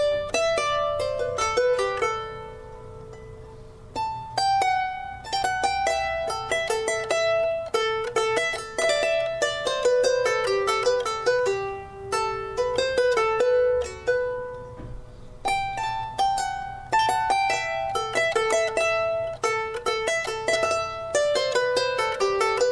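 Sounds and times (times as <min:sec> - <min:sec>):
harp playing: 0:00.0 - 0:22.7.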